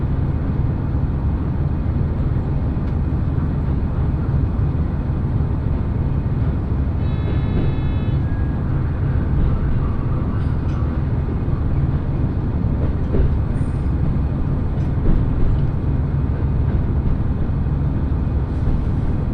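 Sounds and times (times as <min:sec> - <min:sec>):
Echigo TOKImeki Railway diesel train rumble: 0:00.0 - 0:19.3.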